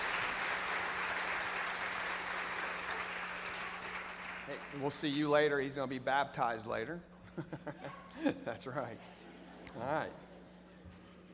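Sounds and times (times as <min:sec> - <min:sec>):
audience applause: 0:00.0 - 0:05.1
speech: 0:04.5 - 0:10.2
laughter: 0:07.2 - 0:10.5.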